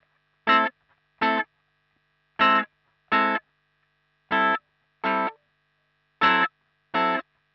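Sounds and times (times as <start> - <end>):
wah guitar chords falling in A: 0.5 - 1.4, 2.4 - 3.4, 4.3 - 5.4, 6.2 - 7.2.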